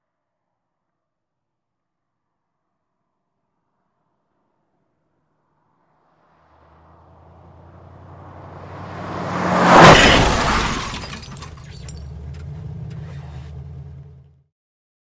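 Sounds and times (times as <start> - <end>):
two vehicles driving at high speed: 4.2 - 14.4
head-on crash of two vehicles: 6.7 - 13.7.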